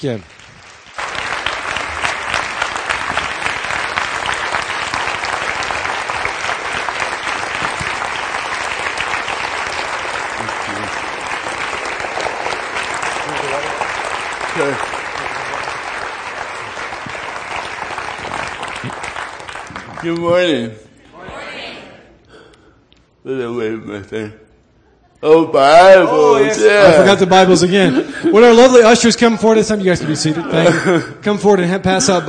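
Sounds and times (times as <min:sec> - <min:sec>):
speech: 0:00.0 - 0:00.4, 0:14.6 - 0:15.0, 0:20.0 - 0:20.9, 0:23.3 - 0:24.4, 0:25.2 - 0:32.2
audience applause welcoming a guest speaker: 0:00.0 - 0:20.4
laughter: 0:26.6 - 0:28.8, 0:29.8 - 0:32.2.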